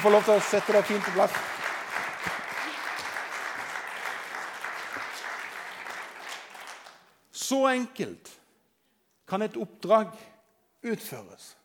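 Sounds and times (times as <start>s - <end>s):
speech: 0.0s - 1.6s, 7.5s - 8.4s, 9.3s - 11.6s
audience applause: 0.0s - 7.1s.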